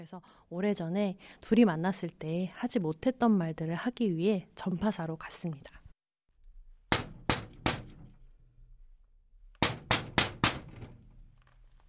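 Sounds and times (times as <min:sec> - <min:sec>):
speech: 0:00.0 - 0:05.8
knocking on a shop door: 0:06.9 - 0:08.1, 0:09.6 - 0:11.0.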